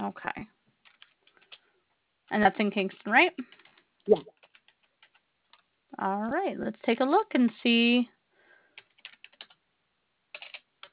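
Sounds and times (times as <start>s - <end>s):
speech: 0.1s - 0.6s, 2.3s - 4.4s, 6.0s - 8.2s
computer keyboard typing: 0.8s - 1.6s, 3.4s - 5.6s, 8.8s - 9.6s, 10.3s - 10.9s.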